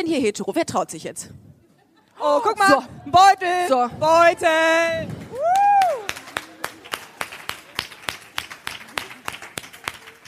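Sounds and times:
speech: 0.0 - 1.5, 2.2 - 5.2
audience applause: 4.9 - 10.2.

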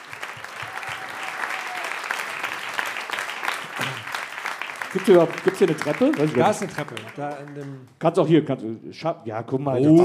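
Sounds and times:
crowd applause: 0.0 - 7.9
speech: 4.9 - 10.0.

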